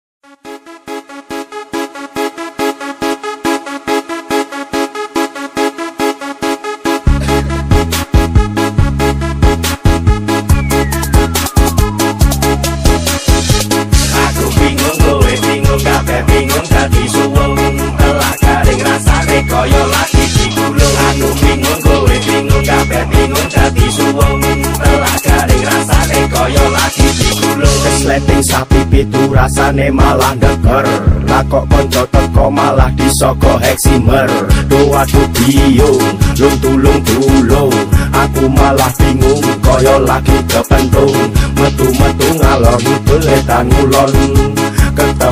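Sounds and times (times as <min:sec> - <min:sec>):
music from a boombox: 0:00.2 - 0:45.3.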